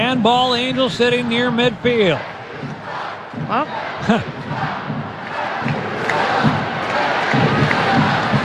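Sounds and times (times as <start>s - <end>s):
stadium crowd chanting and roaring: 0.0s - 8.4s
speech: 0.1s - 2.4s, 3.4s - 4.8s.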